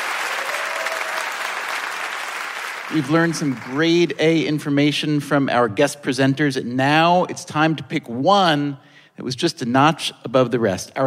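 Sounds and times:
live audience applause for presenters at an evening show: 0.0s - 4.0s
speech: 2.9s - 11.0s.

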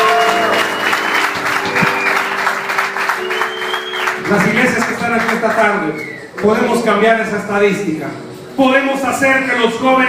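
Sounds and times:
audience applause: 0.0s - 6.6s
speech: 4.3s - 10.0s.

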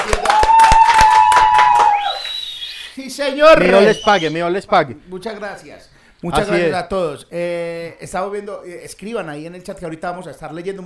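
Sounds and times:
audience applause: 0.0s - 2.4s
speech: 3.2s - 10.8s.

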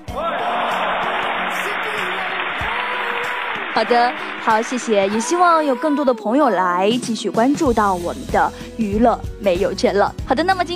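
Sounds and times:
applause: 0.1s - 5.3s
speech: 3.8s - 10.7s.

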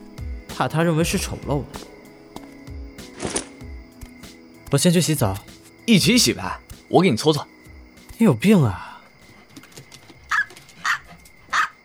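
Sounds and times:
speech: 0.6s - 1.9s, 4.7s - 7.5s, 8.2s - 8.9s
dog barking: 10.3s - 11.8s.

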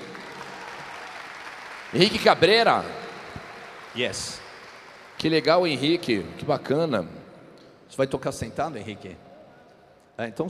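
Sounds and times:
applause: 0.0s - 6.3s
speech: 1.9s - 3.0s, 4.0s - 4.4s, 5.2s - 7.2s, 7.9s - 9.2s, 10.2s - 10.4s.

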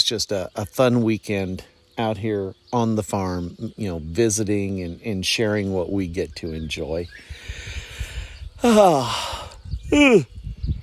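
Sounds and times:
speech: 0.1s - 7.8s, 8.6s - 10.4s
big yawn: 8.6s - 10.3s.

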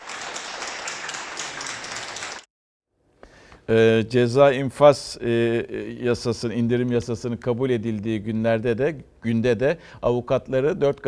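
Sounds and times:
crowd applause for discharged patients: 0.0s - 2.5s
speech: 3.7s - 11.0s.

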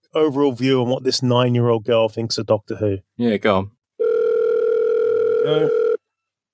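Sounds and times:
speech: 0.2s - 3.8s, 5.4s - 5.8s
telephone ringing tone on a call: 4.0s - 6.0s.

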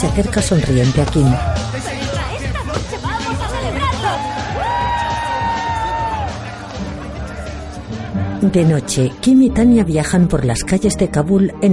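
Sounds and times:
speech: 0.0s - 1.9s, 8.4s - 11.7s
busy overlapping chatter: 0.7s - 9.1s
group of people cheering in a lounge: 0.8s - 8.5s.

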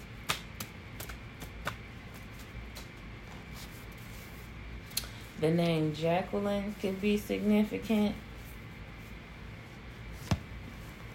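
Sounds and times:
deck of tarot cards being shuffled: 0.2s - 3.8s
speech: 5.4s - 8.3s.

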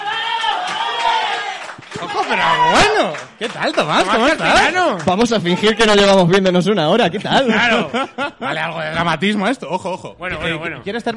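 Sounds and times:
audience cheering: 0.0s - 6.2s
speech: 2.3s - 11.1s
laughter: 7.0s - 10.2s.

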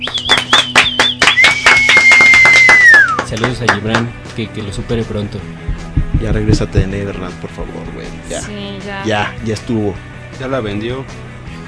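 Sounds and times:
long high whistle: 0.0s - 3.3s
people clapping for guest: 0.0s - 4.2s
speech: 3.4s - 11.3s.

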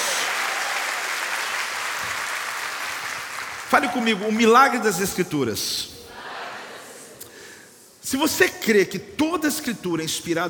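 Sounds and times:
audience applause: 0.0s - 4.4s
speech: 3.7s - 5.9s, 8.1s - 10.4s.

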